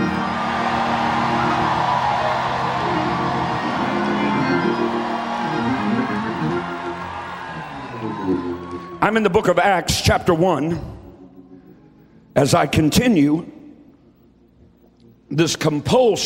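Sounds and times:
audience shouting: 0.0 - 9.0
speech: 9.1 - 10.9, 12.4 - 13.5, 15.3 - 16.2.

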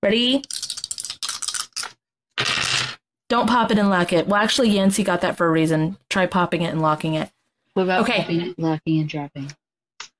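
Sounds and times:
speech: 0.0 - 0.6, 3.3 - 9.6
two dice rattling and clattering: 0.4 - 3.0.

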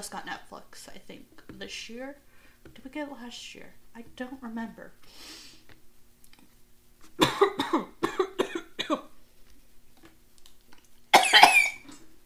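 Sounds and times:
speech: 0.0 - 5.5, 7.2 - 8.0
person coughing: 7.2 - 9.1, 11.2 - 11.9.

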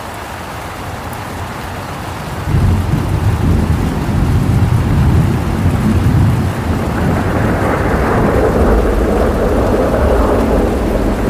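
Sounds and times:
steady rain in a rainstorm: 0.0 - 11.2
deep thunder rumble: 2.4 - 11.2.

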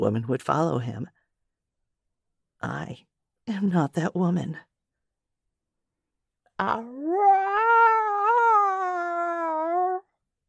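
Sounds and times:
speech: 0.0 - 1.2, 2.6 - 4.7, 6.6 - 7.3
cat howling: 6.6 - 10.1.

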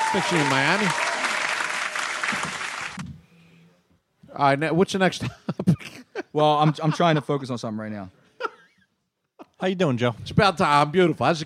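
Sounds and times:
roaring round of applause: 0.0 - 3.0
speech: 0.1 - 1.0, 2.3 - 2.6, 4.4 - 8.2, 9.6 - 11.4
laughter: 5.1 - 8.8.

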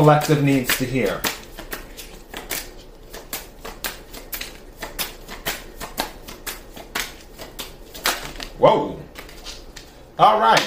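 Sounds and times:
speech: 0.0 - 1.4
deck of tarot cards shuffled by hand: 0.0 - 10.0.

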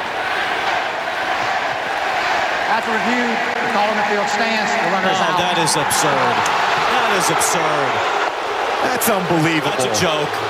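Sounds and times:
stadium crowd chanting: 0.0 - 10.4
speech: 2.8 - 8.2, 8.8 - 10.4.

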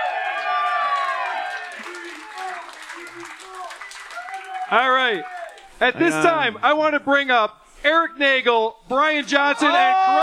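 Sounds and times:
cheers and high whoops: 0.0 - 5.8, 9.5 - 10.2
crowd applause: 0.0 - 6.3
speech: 4.7 - 10.2.

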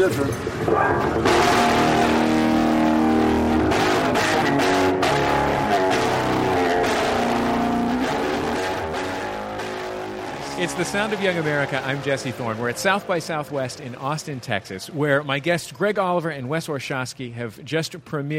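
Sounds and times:
speech: 0.0 - 1.6, 10.6 - 18.3
heavily distorted bass guitar playing: 0.6 - 12.9.

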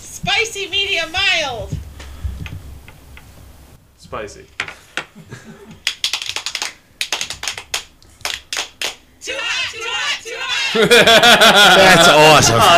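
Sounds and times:
speech: 0.4 - 1.8, 4.1 - 4.6, 5.2 - 5.8, 10.2 - 12.7
messy clapping: 5.7 - 9.0
laughter: 10.4 - 12.7.

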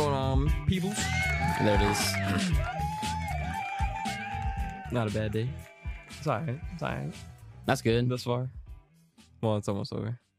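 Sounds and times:
rhythmic low thumps: 0.0 - 8.8
speech: 0.6 - 2.8, 4.9 - 8.6, 9.4 - 10.2
applause button sound effect of crowd cheering and whooping: 0.8 - 6.2.

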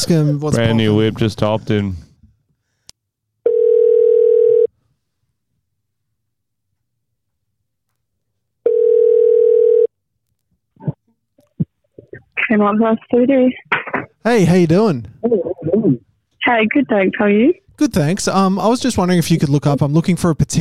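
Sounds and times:
speech: 0.0 - 2.0, 12.5 - 20.5
phone line ringing through the receiver: 3.4 - 4.7, 8.6 - 9.9.

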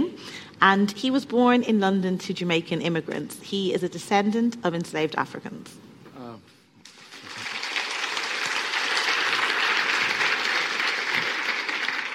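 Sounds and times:
speech: 0.6 - 5.9
audience applause: 6.9 - 12.1.

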